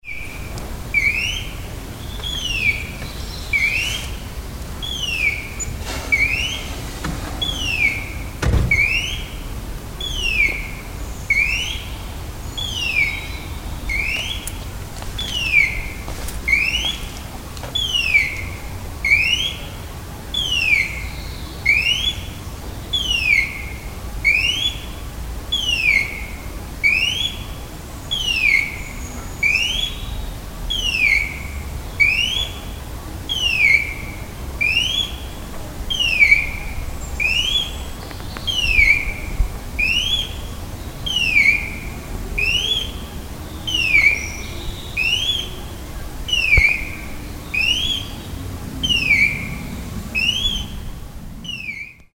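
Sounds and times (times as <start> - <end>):
noise: 0.0 - 52.1.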